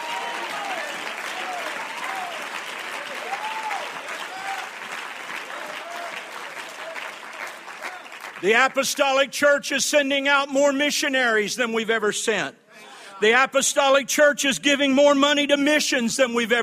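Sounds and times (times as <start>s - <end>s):
audience clapping: 0.0s - 8.9s
speech: 8.4s - 12.6s, 13.2s - 16.6s.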